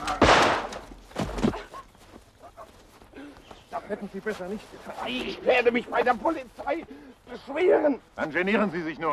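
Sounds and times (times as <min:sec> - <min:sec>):
rifle gunshots fired wildly by a drunken man: 0:00.2 - 0:00.8
speech: 0:03.9 - 0:09.1.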